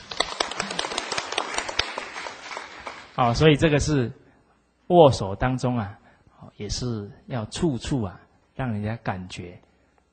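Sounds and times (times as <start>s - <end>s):
crowd applauding: 0.0s - 3.2s
speech: 3.2s - 4.2s, 4.9s - 9.7s.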